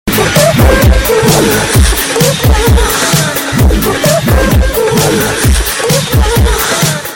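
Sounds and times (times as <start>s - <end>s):
person crying out: 0.2s - 7.1s.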